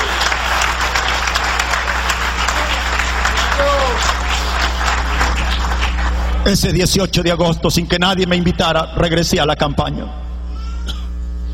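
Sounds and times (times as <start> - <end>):
audience applause: 0.0 - 6.4
low constant hum: 0.0 - 11.5
voices and rising cry: 2.4 - 4.3
speech: 6.4 - 10.2.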